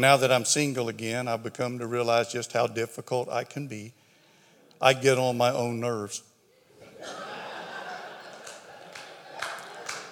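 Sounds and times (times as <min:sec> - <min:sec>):
speech: 0:00.0 - 0:04.0, 0:04.8 - 0:06.3
laughter: 0:06.7 - 0:10.1
audience applause: 0:07.8 - 0:10.1.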